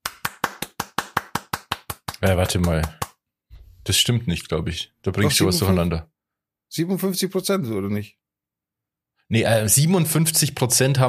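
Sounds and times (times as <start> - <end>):
clapping: 0.0 - 3.2
speech: 2.2 - 3.0, 3.9 - 6.1, 6.7 - 8.2, 9.3 - 11.0.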